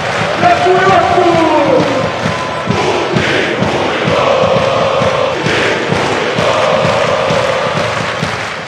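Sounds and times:
crowd of football fans chanting in unison: 0.0s - 8.6s.

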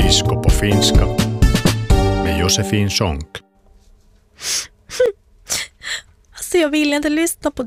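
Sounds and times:
speech: 0.1s - 1.3s, 2.5s - 3.5s, 4.4s - 5.6s, 6.5s - 7.6s
nose blowing: 4.4s - 5.1s
sniffling: 4.4s - 6.1s.

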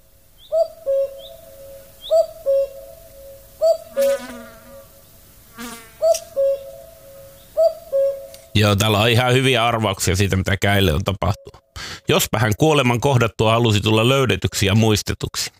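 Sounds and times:
common cuckoo calling: 0.4s - 5.1s, 6.0s - 8.6s
speech: 8.6s - 15.5s.

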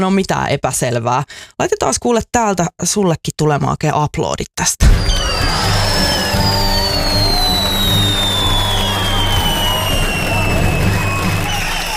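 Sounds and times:
speech: 0.0s - 5.8s
fireworks sound effect: 4.8s - 11.9s.

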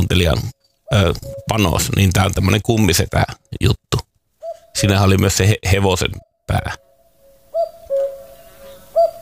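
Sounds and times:
speech: 0.1s - 3.8s, 4.8s - 6.9s
cuckoo call: 0.8s - 1.9s, 4.4s - 5.2s, 6.2s - 9.2s.

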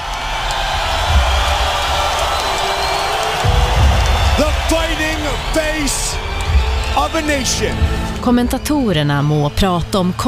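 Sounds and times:
crowd cheering as Conor McGregor steps into the spotlight at a fight: 0.0s - 10.2s
speech: 5.5s - 6.3s, 6.9s - 10.2s.

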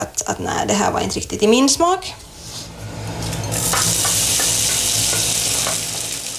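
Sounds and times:
speech: 0.3s - 2.3s
Baltic herring and other ingredients sizzling in a pan: 3.2s - 6.3s.

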